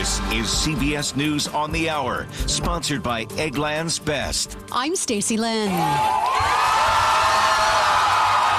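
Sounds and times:
speech: 0.1s - 6.7s
crowd cheering in Tel Aviv as Israeli hostages are released: 5.6s - 8.5s
whoops and shouts from crowd: 5.7s - 8.5s.

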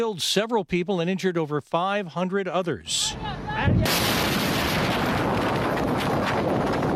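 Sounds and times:
speech: 0.0s - 4.3s
deadly explosion at a port in southern Iran: 3.7s - 6.9s.

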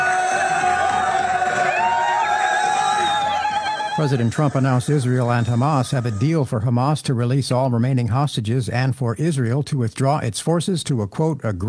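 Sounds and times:
crowd cheering in celebration: 0.0s - 6.5s
speech: 4.0s - 11.6s.

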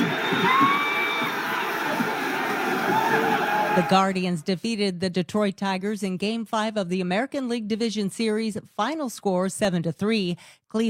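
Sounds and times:
crowd cheering: 0.0s - 4.2s
speech: 3.8s - 10.8s.

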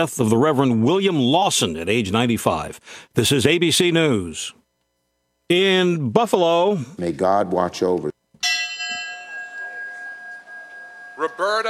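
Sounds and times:
speech: 0.0s - 4.6s, 5.5s - 8.1s
memorial bell ringing for Buffalo grocery store shooting victims: 8.4s - 11.6s.

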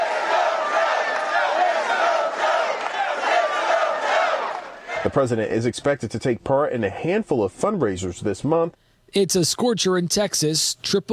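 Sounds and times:
rally crowd chanting: 0.0s - 5.1s
speech: 5.0s - 11.1s.

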